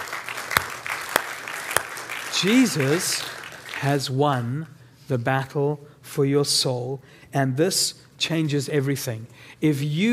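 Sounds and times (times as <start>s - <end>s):
audience applause: 0.0s - 4.0s
speech: 2.4s - 10.1s.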